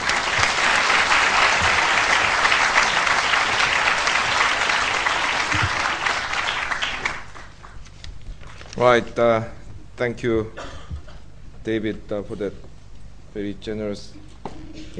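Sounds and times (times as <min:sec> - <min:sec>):
audience applause welcoming a speaker to a lecture on development policy: 0:00.0 - 0:08.6
speech: 0:08.8 - 0:10.6, 0:11.6 - 0:12.7, 0:13.3 - 0:14.3.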